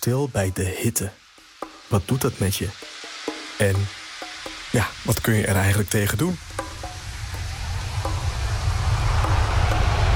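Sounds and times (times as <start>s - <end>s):
speech: 0.0s - 1.2s, 1.9s - 2.9s, 3.6s - 4.0s, 4.7s - 6.4s
airplane landing or taking off: 7.0s - 10.1s.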